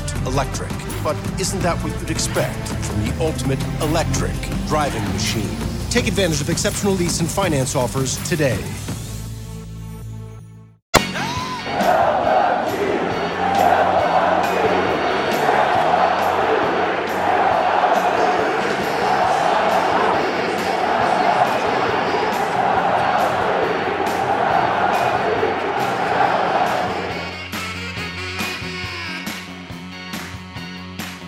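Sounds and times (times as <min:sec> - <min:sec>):
speech: 0:00.3 - 0:08.9
stadium crowd cheering: 0:11.0 - 0:30.4
whoops and yells: 0:11.2 - 0:12.1.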